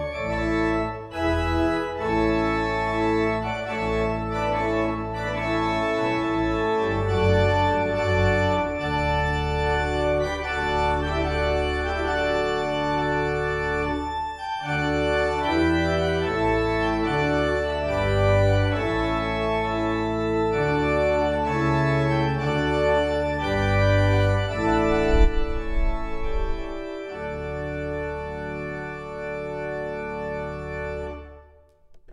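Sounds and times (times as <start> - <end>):
trumpet piece for weddings: 0.0 - 32.1.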